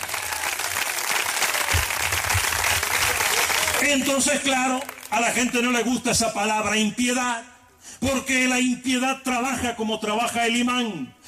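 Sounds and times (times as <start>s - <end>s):
audience applauding: 0.0s - 5.7s
speech: 3.9s - 11.2s.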